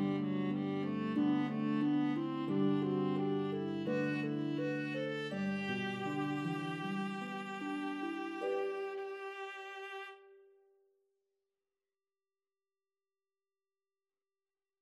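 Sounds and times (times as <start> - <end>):
harp melody: 0.0 - 10.2
viola: 0.0 - 10.4.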